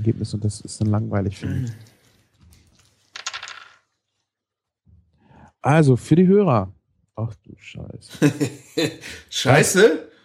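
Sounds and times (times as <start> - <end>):
speech: 0.0 - 1.9, 5.6 - 10.1
dice rolling on a table: 3.0 - 4.0.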